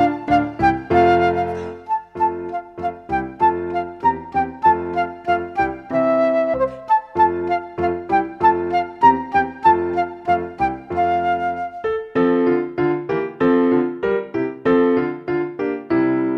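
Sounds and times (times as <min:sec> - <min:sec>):
solo flute: 0:00.0 - 0:12.5
piano accompaniment: 0:00.0 - 0:16.3.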